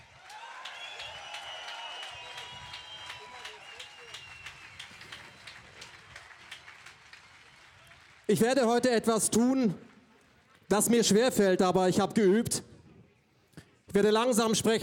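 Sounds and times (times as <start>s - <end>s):
cheering voices: 0.0s - 6.3s
large crowd applauding: 0.0s - 10.7s
speech: 8.3s - 9.9s, 10.7s - 12.7s, 14.0s - 14.8s.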